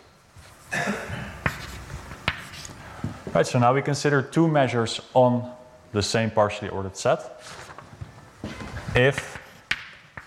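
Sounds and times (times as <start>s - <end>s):
marker or chalk writing on a board during a mathematics lecture: 1.4s - 2.8s, 9.0s - 10.2s
speech: 3.3s - 7.6s, 9.0s - 9.3s.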